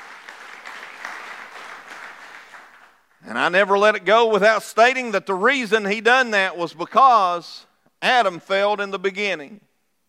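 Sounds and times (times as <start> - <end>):
audience clapping hands in praise: 0.0 - 3.5
speech: 3.2 - 9.7.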